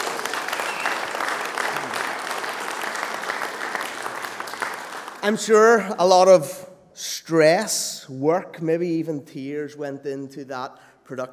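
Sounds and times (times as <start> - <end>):
crowd applauding: 0.0 - 6.0
speech: 5.2 - 11.3.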